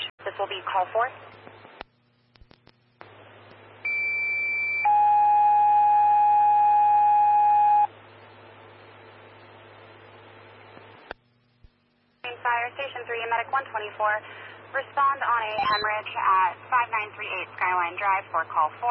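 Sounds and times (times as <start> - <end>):
speech: 0.4 - 1.3, 13.1 - 18.9
fire dispatch alert tones: 3.9 - 7.9, 15.6 - 16.0.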